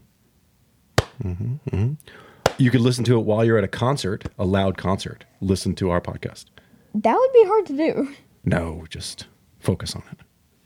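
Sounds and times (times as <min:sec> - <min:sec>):
slow sarcastic hand clapping: 0:01.0 - 0:01.3, 0:02.4 - 0:02.7
speech: 0:01.2 - 0:10.3.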